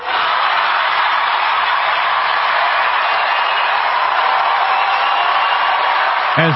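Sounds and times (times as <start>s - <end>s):
enthusiastic crowd roaring and cheering at a rally: 0.0s - 6.5s.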